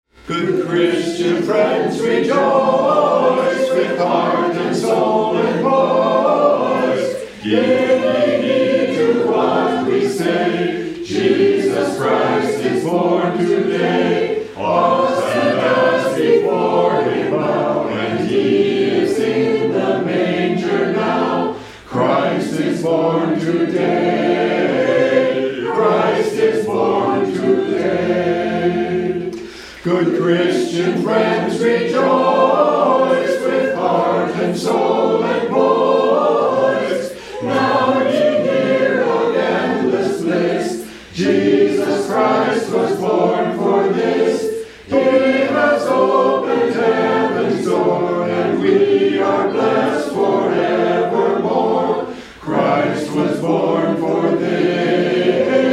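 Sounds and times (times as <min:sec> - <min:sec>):
hymn: 0:00.1 - 0:55.7.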